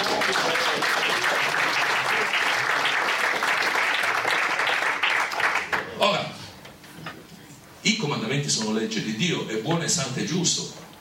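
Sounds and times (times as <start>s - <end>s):
applause: 0.0s - 6.0s
speech: 8.3s - 10.8s.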